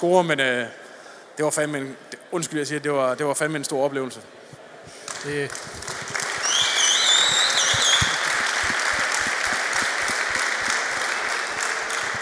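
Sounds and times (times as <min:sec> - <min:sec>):
speech: 0:00.0 - 0:00.8, 0:01.4 - 0:04.4, 0:05.2 - 0:05.9
audience applause: 0:05.1 - 0:12.2.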